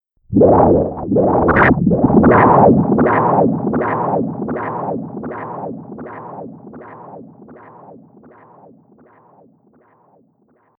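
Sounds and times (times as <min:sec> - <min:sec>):
chaotic electronic wind whoosh: 0:00.3 - 0:04.8.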